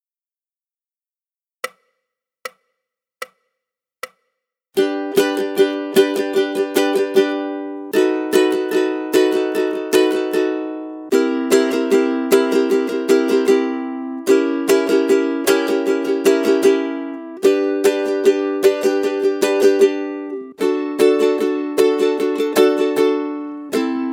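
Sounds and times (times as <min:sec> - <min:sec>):
ukulele rhythm study: 0:04.8 - 0:24.1.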